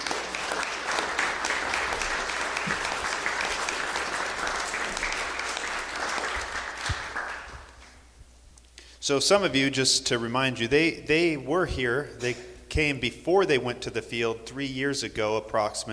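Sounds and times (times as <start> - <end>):
round of applause: 0.0 - 8.0
speech: 9.1 - 15.9.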